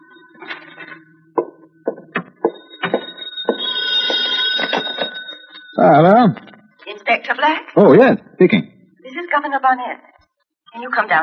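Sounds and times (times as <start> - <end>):
old-fashioned telephone ringing: 0.0 - 7.3
speech: 5.8 - 6.4, 7.3 - 8.7, 9.3 - 10.1, 10.8 - 11.2.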